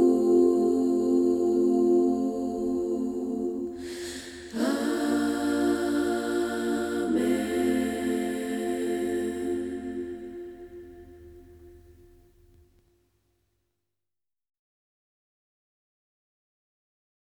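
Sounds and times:
person humming a hymn: 0.0 - 10.8.

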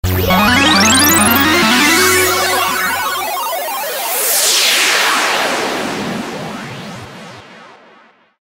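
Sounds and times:
game level transition sound: 0.0 - 5.4.

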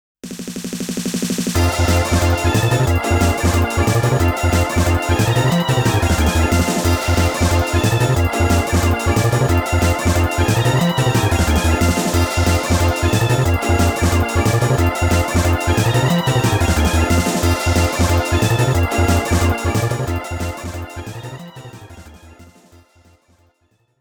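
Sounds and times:
last boss roaring background music: 0.6 - 22.5.

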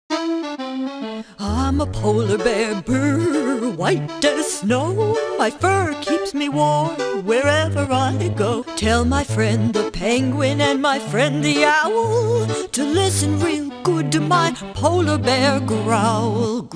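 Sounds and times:
song: 0.1 - 16.6.

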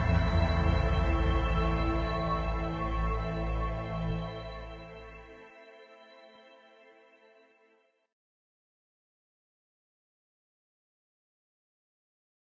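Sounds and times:
game music floor track: 0.0 - 4.0.

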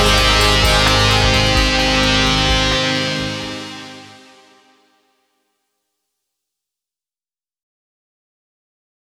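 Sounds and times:
karaoke singing: 0.0 - 4.6.

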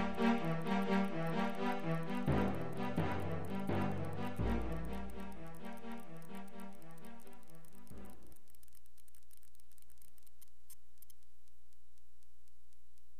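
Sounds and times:
format countdown: 0.0 - 8.2.

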